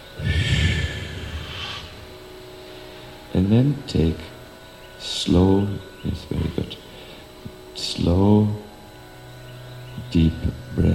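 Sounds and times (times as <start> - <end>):
deep exhale during a guided breathing exercise: 0.2 - 2.1
speech: 3.4 - 4.3, 5.0 - 6.8, 7.8 - 8.6, 10.1 - 10.9.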